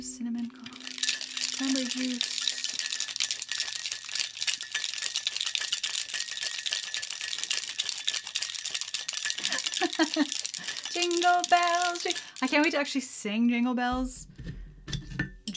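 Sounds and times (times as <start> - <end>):
speech: 0.0 - 0.8, 1.6 - 2.4, 10.0 - 14.3
cocktail shaker rattling with ice: 0.0 - 13.1.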